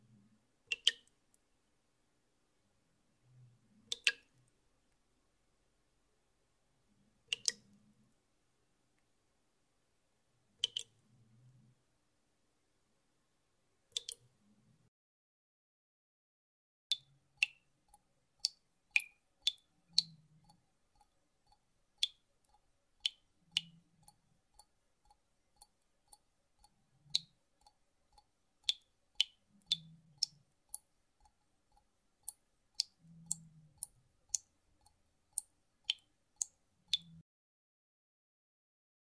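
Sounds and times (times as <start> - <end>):
water dripping in a kitchen: 0.6 - 1.4, 3.7 - 5.0, 7.2 - 8.1, 10.6 - 11.1, 13.9 - 14.4, 16.9 - 37.2.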